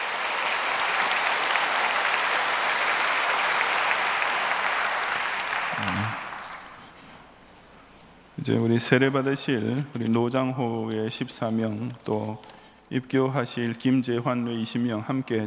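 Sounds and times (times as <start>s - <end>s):
audience applause: 0.0s - 7.0s
speech: 8.4s - 15.4s.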